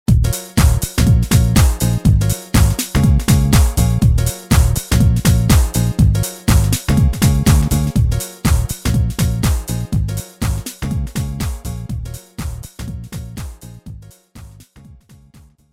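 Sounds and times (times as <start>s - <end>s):
house music: 0.1s - 15.5s.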